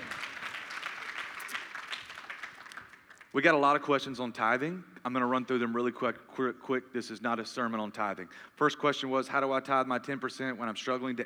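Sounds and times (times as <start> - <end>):
audience clapping: 0.0 - 3.4
speech: 3.3 - 11.2.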